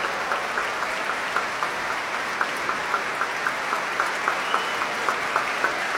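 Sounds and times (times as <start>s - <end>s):
concert audience applause: 0.0s - 5.9s.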